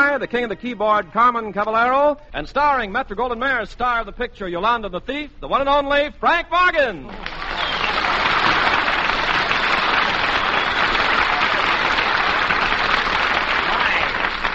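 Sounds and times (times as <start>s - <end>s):
speech: 0.2s - 7.5s
studio audience applause: 7.1s - 14.5s.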